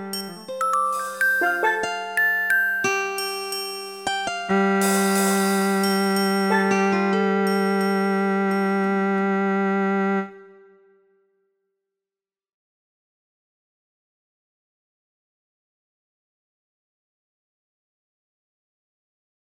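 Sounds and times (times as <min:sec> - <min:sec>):
cello tune: 0:00.0 - 0:03.4, 0:04.3 - 0:10.8.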